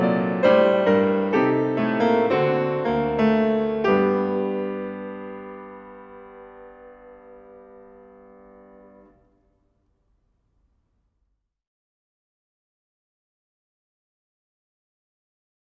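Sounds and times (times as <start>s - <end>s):
prelude and fugue in G minor: 0.0s - 9.1s.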